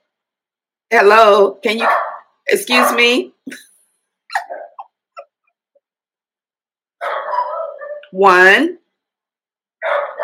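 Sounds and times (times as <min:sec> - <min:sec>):
speech: 0:00.9 - 0:03.7, 0:08.1 - 0:08.8
dog barking: 0:01.8 - 0:03.2, 0:04.4 - 0:04.8, 0:07.0 - 0:08.1, 0:09.8 - 0:10.2.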